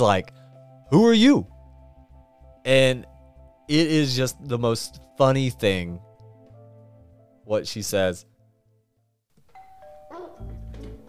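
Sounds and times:
speech: 0.0 - 1.5, 2.6 - 3.1, 3.7 - 6.1, 7.5 - 8.3
electronic doorbell chiming: 9.5 - 11.0.

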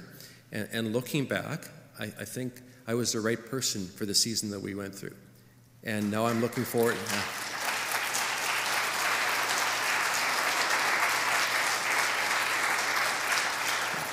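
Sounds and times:
speech: 0.5 - 7.4
audience applause: 6.0 - 14.1.

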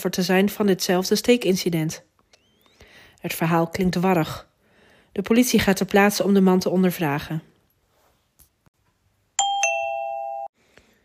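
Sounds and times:
speech: 0.0 - 2.1, 3.2 - 4.5, 5.2 - 7.5
electronic doorbell two-tone ring: 9.4 - 10.6.

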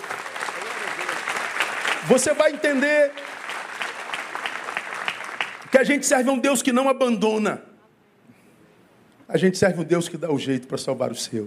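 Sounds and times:
audience applauding: 0.0 - 6.0
speech: 2.0 - 3.5, 5.8 - 7.7, 9.3 - 11.4.

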